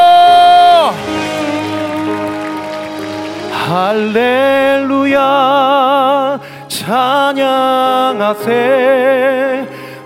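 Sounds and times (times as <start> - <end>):
loud sustained voice holding long notes: 0.0 - 10.0
audience applause: 0.5 - 4.8
speech: 3.8 - 4.4.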